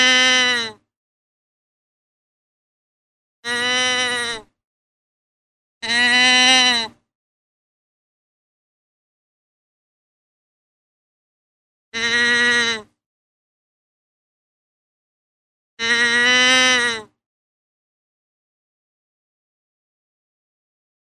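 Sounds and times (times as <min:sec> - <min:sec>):
deer bleating: 0:00.0 - 0:00.8, 0:03.5 - 0:04.5, 0:05.8 - 0:07.0, 0:12.0 - 0:12.9, 0:15.8 - 0:17.1.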